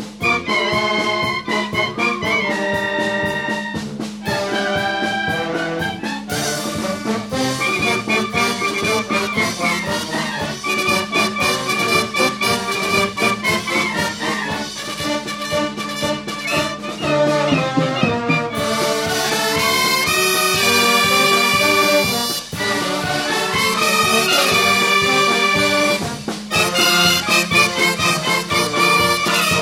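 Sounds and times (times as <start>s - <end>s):
musical band playing at a folklore festival: 0.0s - 29.6s.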